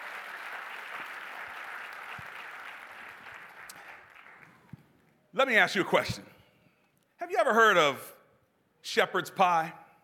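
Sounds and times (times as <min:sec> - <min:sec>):
audience applause: 0:00.0 - 0:04.7
speech: 0:05.4 - 0:06.4, 0:07.4 - 0:08.1, 0:08.8 - 0:09.8.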